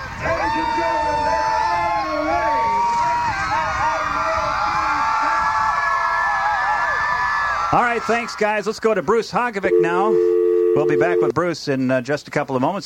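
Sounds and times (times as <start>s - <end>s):
parade crowd cheering and shouting: 0.0s - 9.2s
speech: 7.7s - 12.8s.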